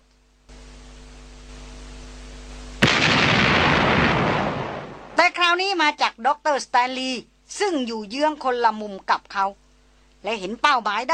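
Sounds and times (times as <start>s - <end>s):
low steady hum: 0.0s - 5.4s
explosion boom: 2.8s - 5.2s
speech: 5.5s - 9.6s, 10.2s - 11.1s.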